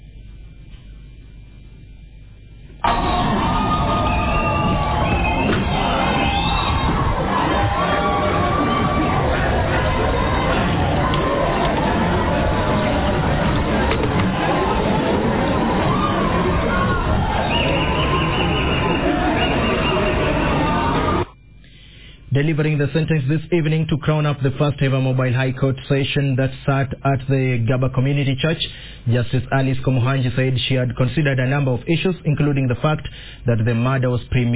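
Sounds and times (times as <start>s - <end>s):
courtroom crowd wild applause and cheering: 2.8s - 21.3s
speech: 22.8s - 34.5s.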